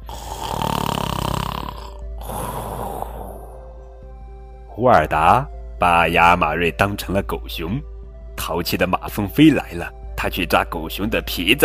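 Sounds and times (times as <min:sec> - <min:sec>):
voice imitating snoring: 0:00.0 - 0:03.8
speech: 0:04.8 - 0:11.6.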